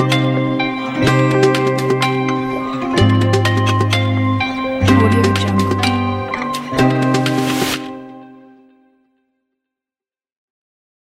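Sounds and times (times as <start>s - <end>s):
latin pop music: 0.0s - 8.1s.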